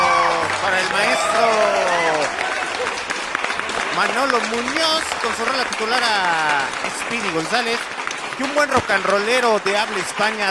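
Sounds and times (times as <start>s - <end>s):
applause: 0.0s - 10.4s
speech: 4.0s - 10.4s.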